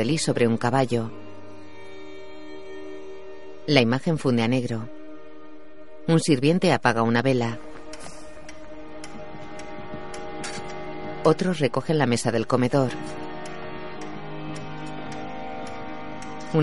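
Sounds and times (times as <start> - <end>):
speech: 0.0 - 1.2, 3.7 - 5.0, 6.1 - 8.1, 11.2 - 13.2
clock ticking: 7.6 - 16.6.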